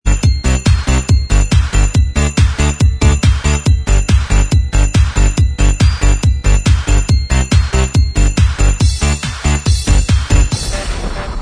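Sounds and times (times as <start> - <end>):
instrumental backing track: 0.1 - 10.9.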